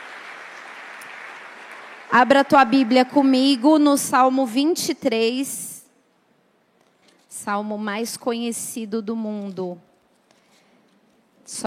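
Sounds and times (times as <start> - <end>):
crowd applause: 0.0 - 3.5
speech: 2.1 - 5.7, 7.4 - 9.9, 11.5 - 11.6.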